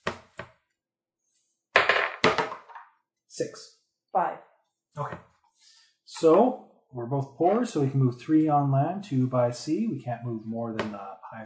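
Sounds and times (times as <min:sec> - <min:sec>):
dice rolling: 0:01.8 - 0:02.9
speech: 0:03.4 - 0:11.4.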